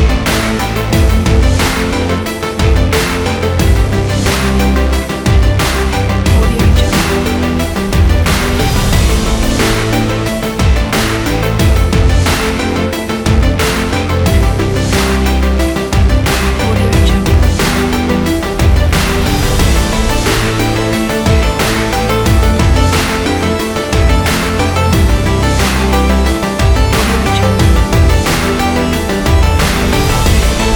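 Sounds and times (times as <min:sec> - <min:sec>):
epic powerful sport drama music: 0:00.0 - 0:30.7.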